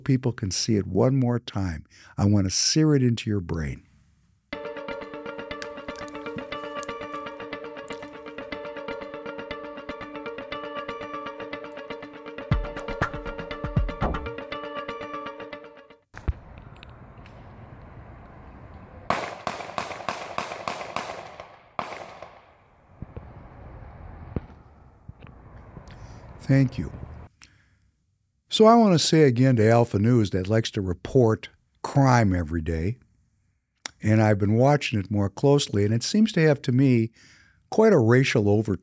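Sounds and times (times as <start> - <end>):
speech: 0.0 - 3.9, 26.5 - 27.0, 28.6 - 33.0, 34.0 - 38.8
gunshots in a replayed video of a shooting: 19.1 - 23.6.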